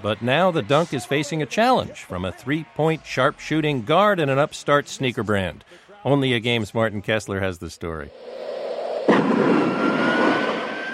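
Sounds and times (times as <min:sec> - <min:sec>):
speech: 0:00.0 - 0:08.6
jet taking off: 0:08.1 - 0:10.9
thin high jet engine whine: 0:09.1 - 0:10.9.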